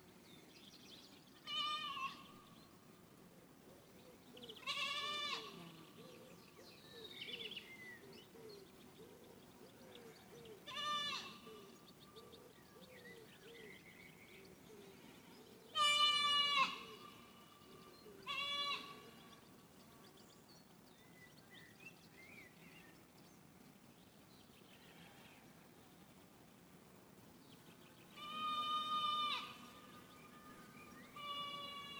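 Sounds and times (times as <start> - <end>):
quiet background hiss: 0.0 - 31.9
goat kid bleating: 1.4 - 2.3, 4.6 - 5.6, 10.7 - 11.5, 15.7 - 17.5, 18.2 - 19.2, 28.1 - 29.8, 31.2 - 31.9.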